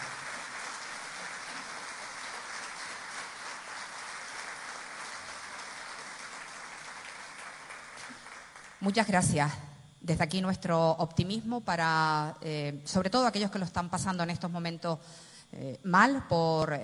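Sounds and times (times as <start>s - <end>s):
audience applause: 0.0s - 8.8s
speech: 8.8s - 16.8s.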